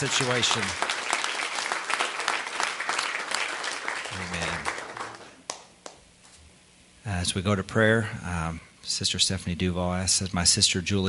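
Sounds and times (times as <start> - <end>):
speech: 0.0 - 0.9, 7.1 - 11.0
many hands clapping in applause: 0.0 - 6.0.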